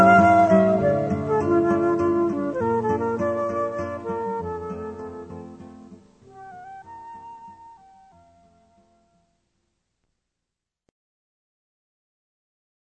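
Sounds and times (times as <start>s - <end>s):
flute: 0.0s - 9.3s
guitar: 0.0s - 9.4s.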